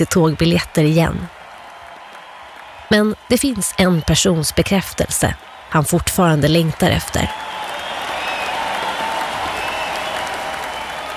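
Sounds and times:
speech: 0.0s - 1.4s, 2.9s - 7.5s
large indoor crowd applauding and cheering: 0.0s - 11.1s
high whistles: 7.3s - 11.1s.

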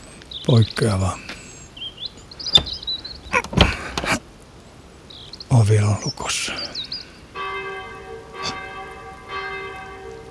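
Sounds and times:
steady hiss: 0.0s - 10.2s
speech: 0.5s - 1.3s, 5.5s - 6.8s
church bells tolling: 7.4s - 10.2s.

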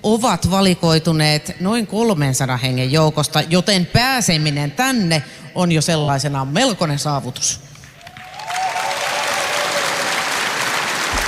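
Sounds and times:
speech: 0.0s - 7.7s
audience applause in a large room: 8.0s - 11.2s.

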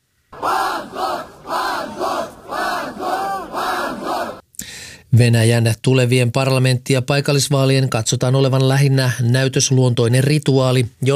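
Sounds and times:
crowd shouting protest chants outside courthouse: 0.4s - 4.4s
speech: 5.2s - 11.1s.

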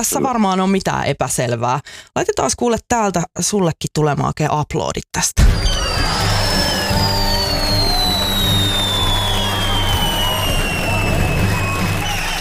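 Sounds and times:
speech: 0.0s - 7.1s
firework long shrill whistle: 5.4s - 12.3s.

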